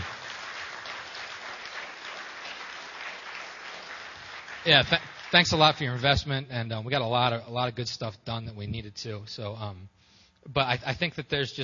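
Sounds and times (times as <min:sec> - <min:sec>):
audience applause: 0:00.0 - 0:06.1
speech: 0:04.6 - 0:11.6.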